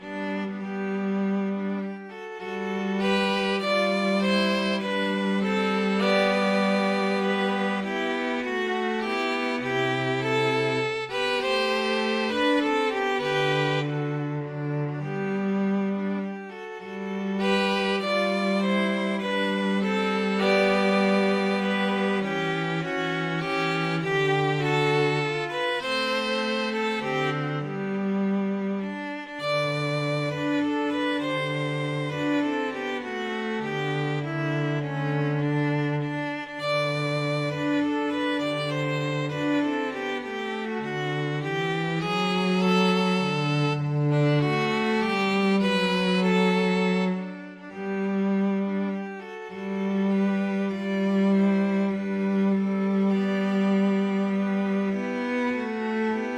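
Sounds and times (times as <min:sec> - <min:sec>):
string trio playing: 0:00.0 - 0:56.3.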